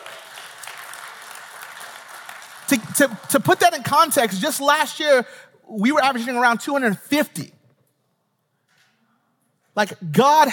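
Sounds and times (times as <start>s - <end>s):
audience clapping: 0.0s - 4.4s
speech: 2.7s - 7.6s, 9.8s - 10.5s.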